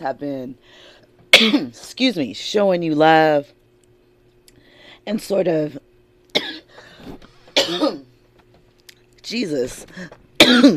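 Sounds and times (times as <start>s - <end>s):
speech: 0.0s - 3.6s, 5.0s - 5.9s, 9.3s - 10.7s
person coughing and choking: 1.3s - 1.8s, 6.3s - 6.8s, 7.5s - 8.1s, 10.4s - 10.7s.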